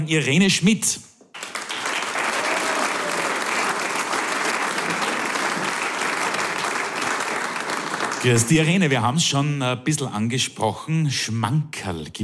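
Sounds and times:
speech: 0.0s - 1.1s, 8.2s - 12.2s
audience applause welcoming guest on stage: 1.4s - 8.9s.

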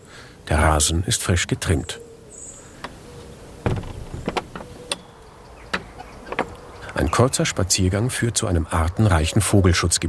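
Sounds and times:
distant expressway traffic carried by wind: 0.0s - 10.0s
speech: 0.5s - 2.0s, 7.2s - 10.0s
sharp clicks and knocks: 3.6s - 6.6s.

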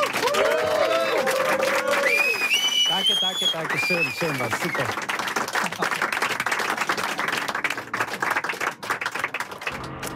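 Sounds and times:
cheering voices: 0.0s - 4.9s
audience applause: 0.0s - 10.1s
high whistles: 2.0s - 4.8s
speech: 3.6s - 5.2s.

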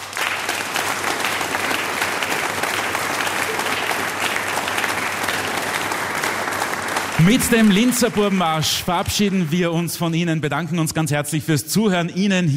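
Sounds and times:
sustained audience applause: 0.0s - 10.0s
speech: 7.2s - 12.5s.

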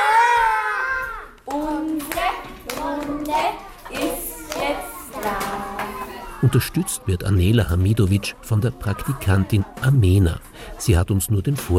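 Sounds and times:
children chanting: 0.0s - 7.1s
children clapping loudly in a morning circle: 1.3s - 6.2s
speech: 6.4s - 11.7s.

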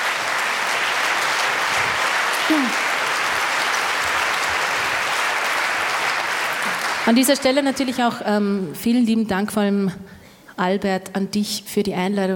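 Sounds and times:
audience applause: 0.0s - 8.2s
speech: 2.5s - 2.8s, 7.1s - 12.3s.

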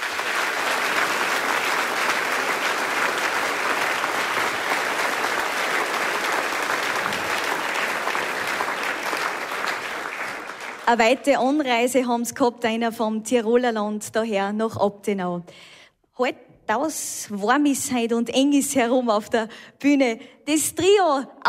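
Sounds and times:
audience applause: 0.0s - 11.0s
speech: 10.9s - 21.4s.

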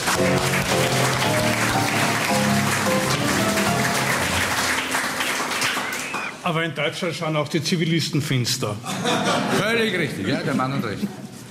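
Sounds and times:
audience applause: 0.0s - 6.4s
speech: 6.5s - 11.3s
laughter: 8.8s - 11.0s.

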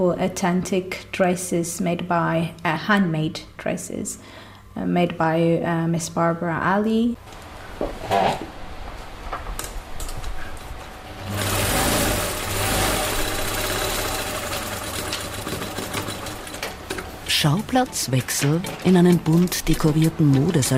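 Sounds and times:
speech: 0.0s - 8.5s, 17.4s - 20.7s
sewing machine running: 11.2s - 17.1s.

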